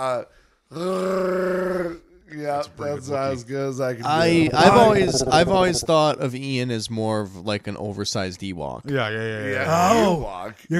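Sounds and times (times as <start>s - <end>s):
speech: 0.0s - 10.7s
person vocally imitating a Wookiee roar: 4.0s - 6.1s.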